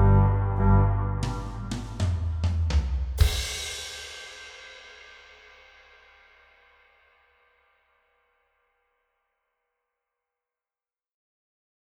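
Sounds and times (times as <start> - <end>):
Organteq organ: 0.0 - 2.4
drums: 0.0 - 7.4.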